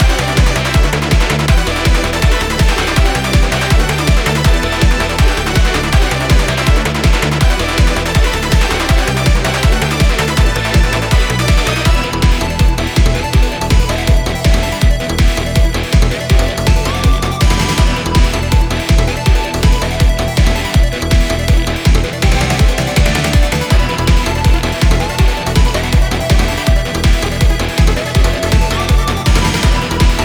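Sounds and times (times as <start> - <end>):
boss battle music loop: 0.0 - 30.2.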